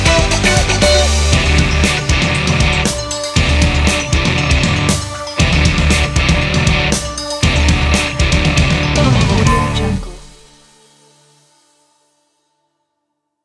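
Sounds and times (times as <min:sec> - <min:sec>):
funk music: 0:00.0 - 0:10.6.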